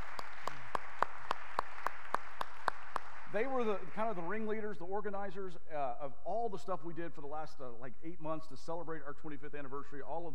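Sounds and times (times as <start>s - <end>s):
sharp hand claps: 0.0s - 3.9s
speech: 3.3s - 10.3s.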